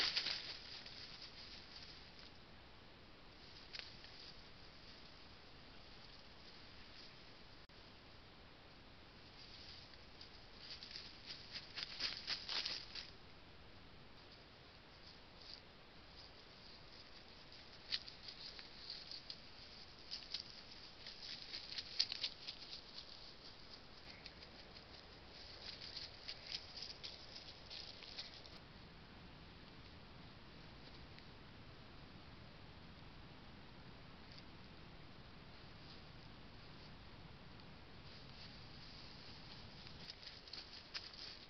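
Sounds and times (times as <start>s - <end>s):
badgers rustling through an orchard at night: 0.0s - 2.4s, 3.3s - 7.6s, 9.2s - 13.2s, 14.1s - 28.6s, 37.6s - 41.4s
faint low rumble: 0.0s - 41.4s
steady low hiss: 0.0s - 41.4s.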